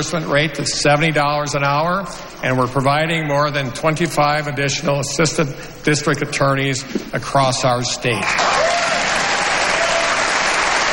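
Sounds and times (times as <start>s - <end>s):
speech: 0.0s - 8.8s
state legislators applauding in the chamber: 8.2s - 10.9s.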